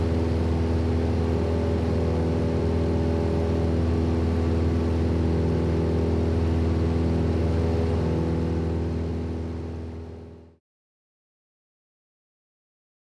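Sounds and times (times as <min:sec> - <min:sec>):
airliner propeller engine noise: 0:00.0 - 0:10.6.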